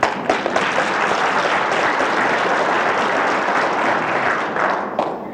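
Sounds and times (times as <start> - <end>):
crowd applauding: 0.0 - 5.2.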